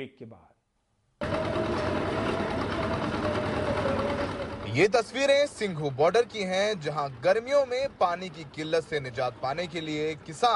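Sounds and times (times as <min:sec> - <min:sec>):
speech: 0:00.0 - 0:00.6, 0:04.7 - 0:10.5
borehole drilling machine for submersible pump: 0:01.2 - 0:04.8.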